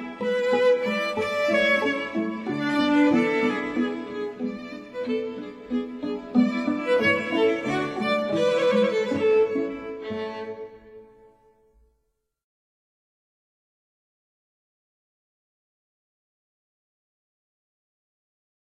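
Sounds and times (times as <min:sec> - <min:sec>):
string quintet playing a minuet: 0:00.0 - 0:11.3.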